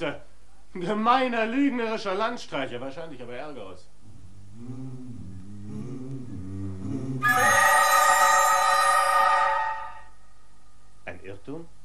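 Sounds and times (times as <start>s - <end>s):
speech: 0.0s - 3.9s, 4.6s - 5.0s
telephone bell ringing: 7.2s - 10.1s.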